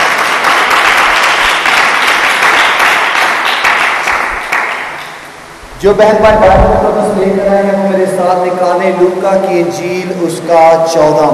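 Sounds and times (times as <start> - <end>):
large crowd applauding: 0.0 - 5.1
speech: 5.8 - 11.3.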